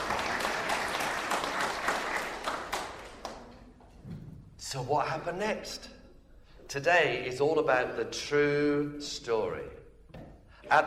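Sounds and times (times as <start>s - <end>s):
crowd applause: 0.0s - 3.5s
speech: 4.7s - 6.0s, 6.7s - 9.8s, 10.7s - 10.8s.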